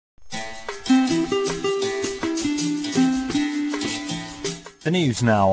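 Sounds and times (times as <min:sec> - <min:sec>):
acrobat jingle: 0:00.4 - 0:05.4.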